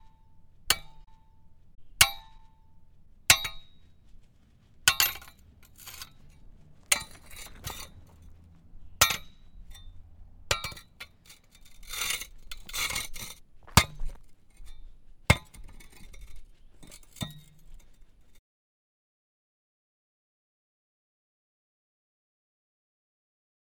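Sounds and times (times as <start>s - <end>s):
pick striking stone: 0.0s - 17.9s.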